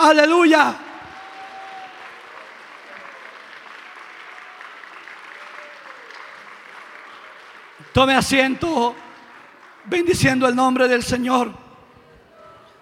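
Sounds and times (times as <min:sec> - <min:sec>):
speech: 0:00.0 - 0:00.9, 0:07.9 - 0:09.0, 0:09.8 - 0:11.6
audience clapping hands in worship: 0:01.0 - 0:11.0.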